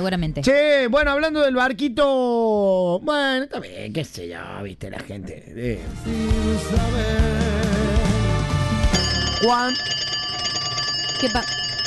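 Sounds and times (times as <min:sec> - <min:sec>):
speech: 0:00.0 - 0:08.0, 0:09.4 - 0:10.0, 0:11.2 - 0:11.6
telephone ringing: 0:08.9 - 0:11.8.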